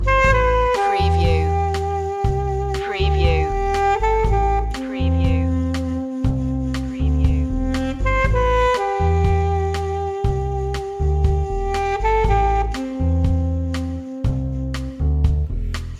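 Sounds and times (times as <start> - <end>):
music loop: 0.0 - 15.9.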